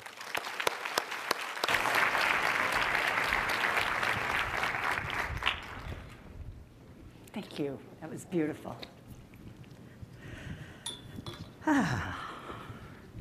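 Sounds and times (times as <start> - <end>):
conference session audience applause welcoming a speaker to the stage: 0.0 - 6.2
speech: 7.6 - 9.0, 11.7 - 12.2.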